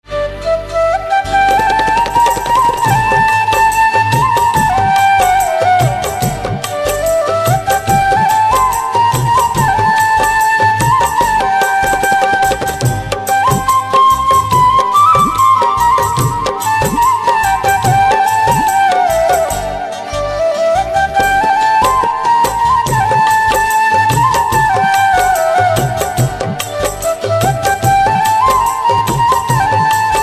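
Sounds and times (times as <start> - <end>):
flute instrumental ringtone: 0.1 - 30.2.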